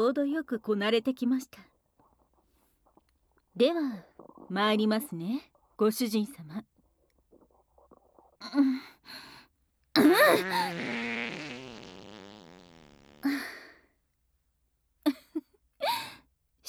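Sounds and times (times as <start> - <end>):
speech: 0.0 - 1.8, 3.6 - 6.7, 8.4 - 9.3, 10.0 - 11.5
fart: 10.0 - 13.6.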